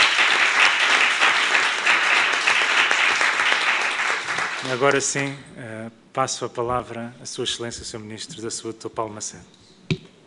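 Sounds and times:
applause: 0:00.0 - 0:05.4
speech: 0:04.7 - 0:10.0.

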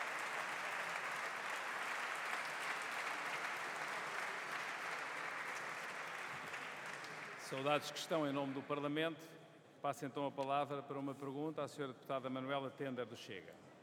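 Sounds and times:
applause in parliament chamber: 0:00.0 - 0:08.8
speech: 0:07.5 - 0:13.7.

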